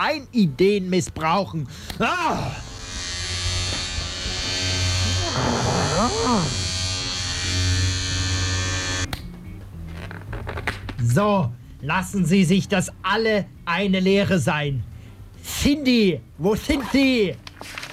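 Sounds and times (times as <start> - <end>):
speech: 0.0 - 2.7, 5.4 - 6.6, 11.0 - 17.8
electric razor shaving hair: 2.5 - 9.1.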